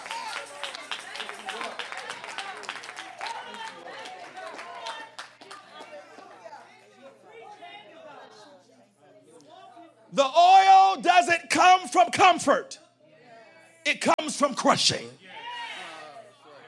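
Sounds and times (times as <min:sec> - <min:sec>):
audience hand claps: 0:00.0 - 0:06.4
murmur of voices: 0:00.0 - 0:16.6
speech: 0:10.1 - 0:10.6, 0:11.2 - 0:12.8, 0:13.9 - 0:15.2
excited shouts: 0:10.2 - 0:12.6, 0:14.1 - 0:16.1.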